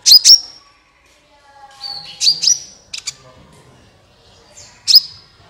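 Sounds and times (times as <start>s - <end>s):
sunbird chirps: 0.1s - 0.6s, 1.8s - 3.2s, 4.6s - 5.2s.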